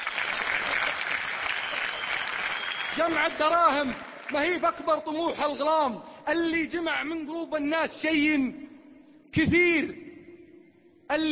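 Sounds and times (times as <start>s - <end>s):
audience applauding: 0.0s - 4.6s
speech: 3.0s - 8.6s, 9.3s - 10.0s, 11.1s - 11.3s.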